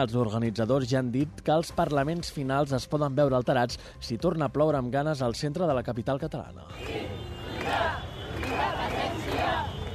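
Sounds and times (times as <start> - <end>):
speech: 0.0 - 9.7
crowd rumble: 6.7 - 9.9
demonstrators shouting at a rally: 6.7 - 9.9.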